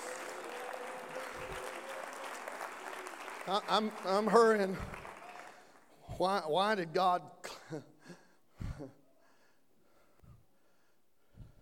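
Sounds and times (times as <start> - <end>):
audience clapping hands: 0.0 - 5.9
speech: 3.5 - 5.0, 6.2 - 7.9.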